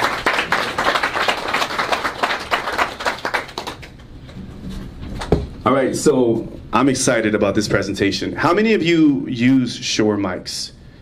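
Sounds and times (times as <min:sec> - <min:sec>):
audience applause: 0:00.0 - 0:04.0
speech: 0:05.9 - 0:10.8.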